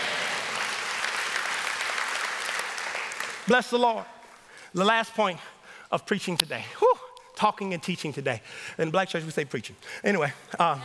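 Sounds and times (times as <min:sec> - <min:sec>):
audience clapping: 0:00.0 - 0:03.9
speech: 0:03.5 - 0:04.1, 0:04.7 - 0:10.8.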